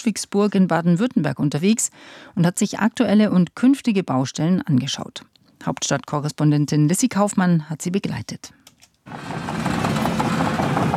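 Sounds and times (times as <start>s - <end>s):
speech: 0.0s - 9.3s
excavators rolling at a construction site: 9.1s - 10.9s.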